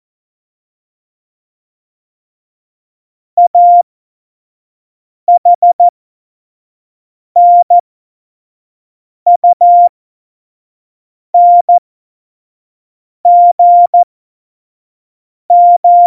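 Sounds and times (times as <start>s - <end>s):
Morse code tones at speed 25: 3.4s - 3.9s, 5.4s - 5.8s, 7.4s - 7.8s, 9.4s - 9.9s, 13.3s - 14.1s, 15.5s - 16.0s.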